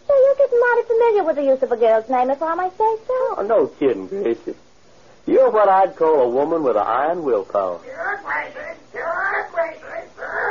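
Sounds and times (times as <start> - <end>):
speech: 1.1 - 9.8
parrot squawking: 7.8 - 10.4.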